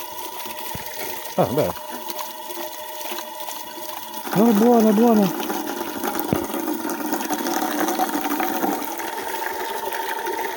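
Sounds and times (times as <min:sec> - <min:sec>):
water running from a tap: 0:00.0 - 0:10.5
speech: 0:01.4 - 0:01.9, 0:04.4 - 0:05.4.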